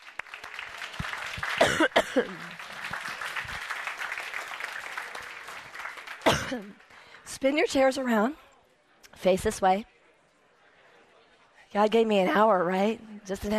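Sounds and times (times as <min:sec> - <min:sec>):
room full of people clapping: 0:00.0 - 0:07.9
speech: 0:01.6 - 0:02.6, 0:06.5 - 0:08.4, 0:09.2 - 0:09.9, 0:11.7 - 0:13.5.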